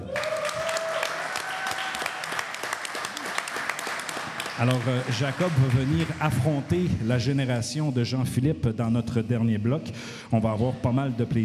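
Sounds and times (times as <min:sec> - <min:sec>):
audience applause: 0:00.0 - 0:07.3
speech: 0:04.6 - 0:11.4.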